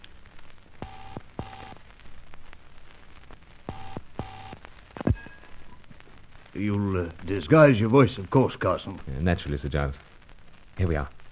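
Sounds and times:
telephone ringing: 0.8s - 1.8s, 3.7s - 5.3s
speech: 6.6s - 10.1s, 10.8s - 11.2s.

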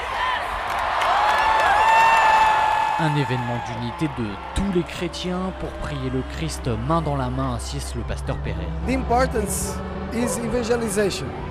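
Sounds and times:
whoops: 0.0s - 4.1s
stadium crowd cheering at World Youth Day in Lisbon 2023: 0.0s - 11.4s
speech: 3.0s - 11.4s.

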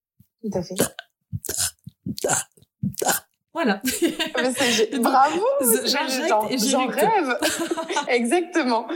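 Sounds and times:
speech: 0.4s - 2.4s, 3.6s - 8.9s
person gulping air into the mouth: 0.7s - 3.4s
laughter: 3.8s - 5.6s, 6.6s - 8.2s.

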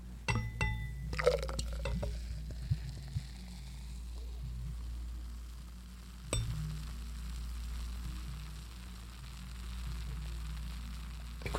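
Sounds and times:
glass clinking: 0.3s - 2.4s, 6.3s - 6.6s
beer pouring: 0.3s - 8.6s, 11.2s - 11.5s
beer foam fizzing as it settles: 0.3s - 11.5s.

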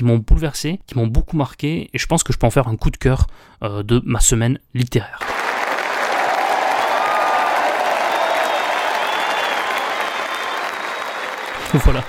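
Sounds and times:
speech: 0.0s - 5.5s, 11.7s - 12.0s
faint whoop or cheer: 5.2s - 11.6s
crowd applause: 5.2s - 12.0s
laughter: 5.2s - 12.0s.

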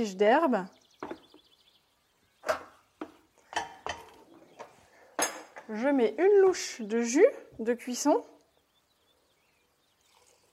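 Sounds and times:
speech: 0.0s - 0.8s, 5.7s - 8.3s
drained pasta put back into a cooking pot with metallic clanks: 3.5s - 4.5s.

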